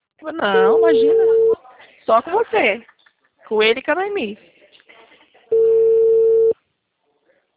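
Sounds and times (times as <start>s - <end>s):
speech: 0.2s - 2.9s, 3.5s - 4.5s
telephone ringback tone on an outgoing call: 0.6s - 1.6s, 5.5s - 6.6s.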